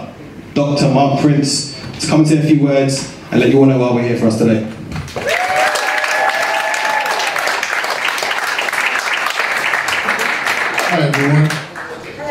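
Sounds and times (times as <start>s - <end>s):
speech: 0.6s - 5.3s, 11.0s - 11.6s
audience applause: 5.1s - 12.2s.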